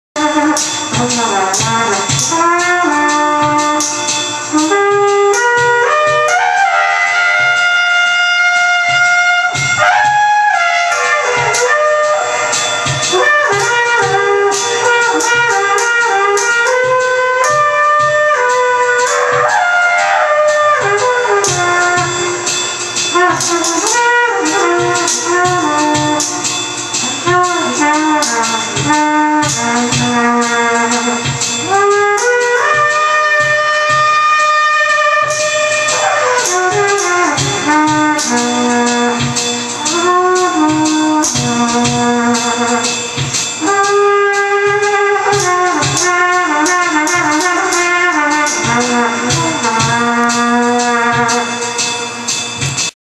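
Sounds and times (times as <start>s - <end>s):
trumpet: 0.0s - 53.0s.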